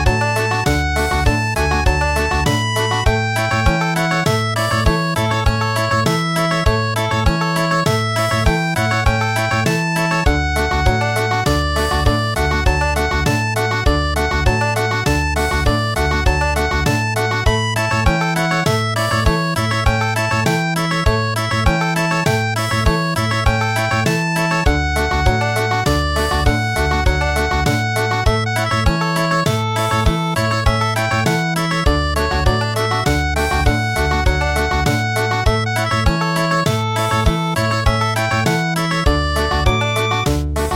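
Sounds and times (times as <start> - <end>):
traditional country music: 0.0 - 40.7.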